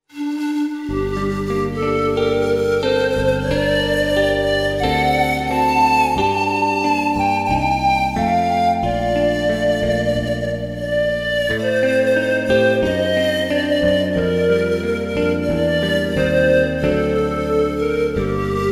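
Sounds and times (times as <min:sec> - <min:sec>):
pan flute music of a traditional song: 0:00.1 - 0:18.7.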